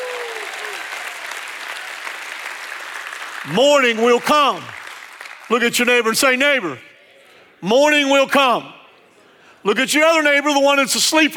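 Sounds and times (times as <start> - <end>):
audience clapping: 0.0 - 6.1
speech: 3.4 - 4.8, 5.5 - 6.9, 7.6 - 8.8, 9.6 - 11.3.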